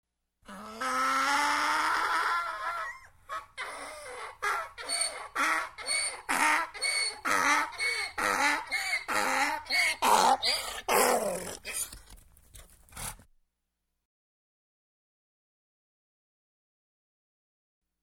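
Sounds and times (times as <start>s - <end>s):
donkey braying: 0.5s - 12.0s.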